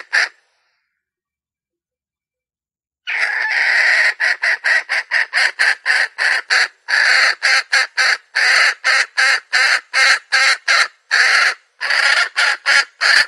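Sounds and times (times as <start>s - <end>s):
hen: 3.0s - 13.2s.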